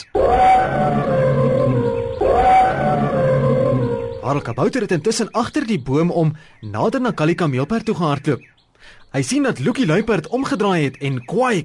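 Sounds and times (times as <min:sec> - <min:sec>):
elephant trumpeting: 0:00.0 - 0:05.0
speech: 0:04.3 - 0:11.6.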